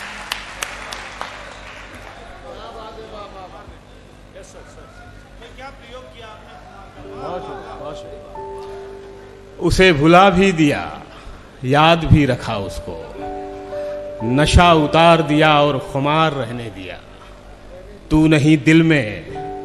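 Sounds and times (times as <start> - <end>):
audience applause: 0.0 - 3.2
speech: 5.7 - 8.5, 9.6 - 11.0, 11.6 - 13.2, 14.2 - 17.1, 18.1 - 19.3.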